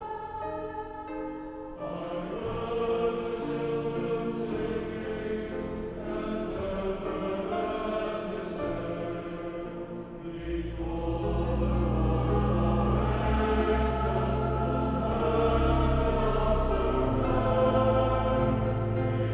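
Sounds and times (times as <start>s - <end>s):
choir singing: 0.0s - 19.3s
grand piano: 0.0s - 19.3s
organ: 1.8s - 19.3s.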